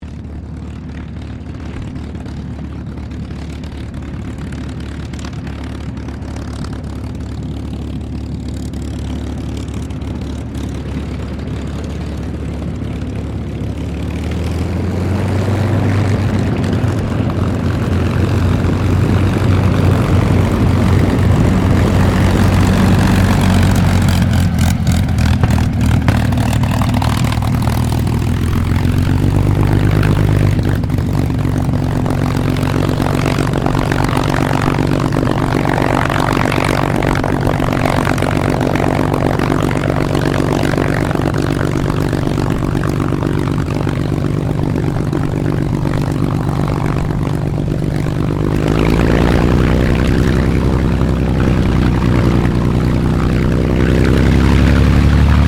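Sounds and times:
CAC CA-18 Mustang Mk23 aircraft taxiing and shutting down: 0.0s - 55.4s.

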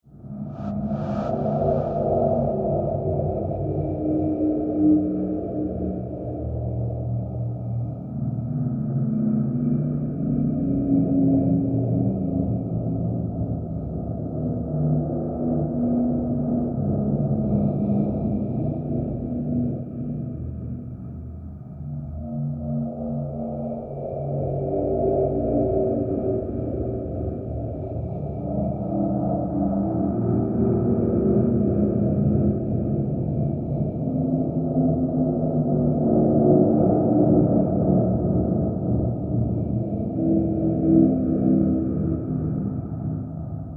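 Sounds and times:
ghostly horror drone bed: 0.1s - 43.7s.

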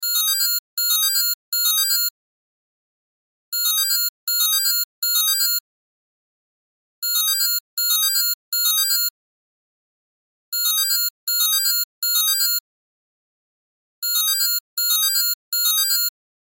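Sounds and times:
cell phone ringtone: 0.0s - 2.1s, 3.6s - 5.6s, 7.0s - 9.1s, 10.6s - 12.6s, 14.0s - 16.1s.

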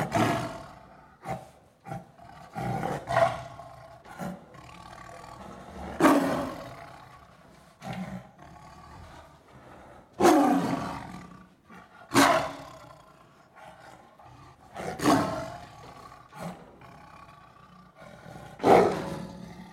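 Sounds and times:
tiger growling and snarling: 0.0s - 19.7s.

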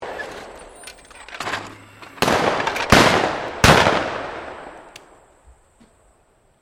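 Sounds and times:
automatic clay pigeon launcher at a gun club: 0.0s - 5.1s
shotgun firing at a gun club: 1.4s - 5.2s.

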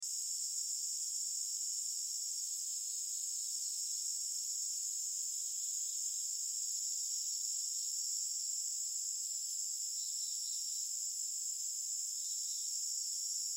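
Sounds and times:
crickets trilling in forest: 0.1s - 13.5s.

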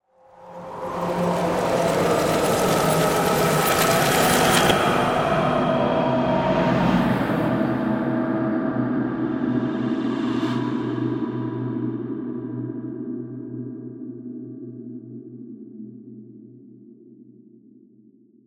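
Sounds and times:
ghostly ethereal swirl: 0.1s - 13.0s.

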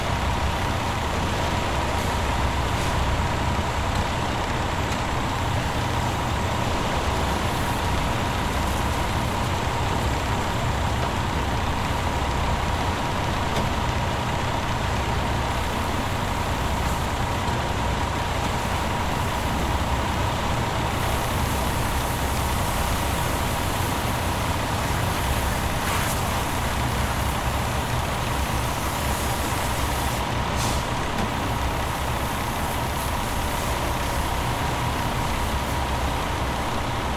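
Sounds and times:
cleaning truck engine running: 0.0s - 37.1s
cleaning truck spray hose spraying: 21.0s - 27.4s, 28.4s - 30.9s.

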